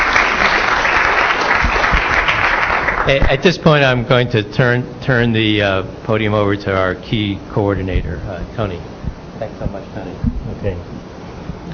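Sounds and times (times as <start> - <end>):
audience applauding at an institute event: 0.0 - 3.4
speech: 3.1 - 11.1.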